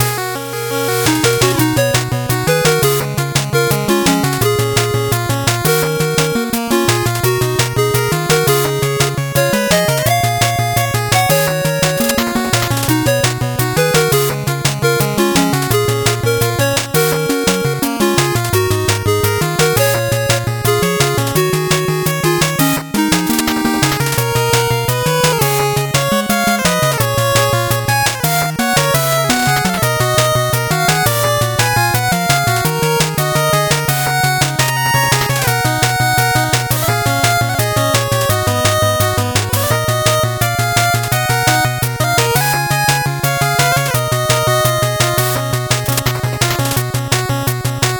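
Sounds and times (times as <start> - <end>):
fast 8-bit background music: 0.0 - 47.9.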